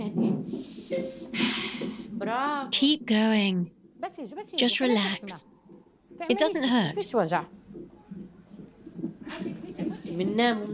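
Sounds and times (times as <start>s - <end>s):
deep heavy breaths: 0.5s - 2.2s
speech: 2.3s - 5.5s, 6.2s - 7.6s, 9.3s - 10.7s.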